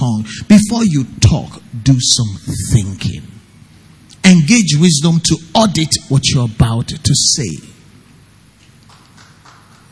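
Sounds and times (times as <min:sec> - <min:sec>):
speech: 0:00.0 - 0:03.3, 0:04.3 - 0:07.8
hand clapping: 0:08.8 - 0:09.9.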